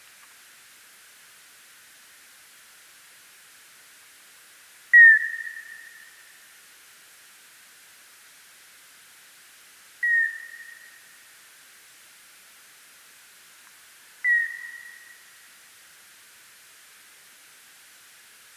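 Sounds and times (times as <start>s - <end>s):
Nyctalus noctula bat calls: 4.9s - 6.1s, 10.0s - 11.1s, 14.2s - 15.4s.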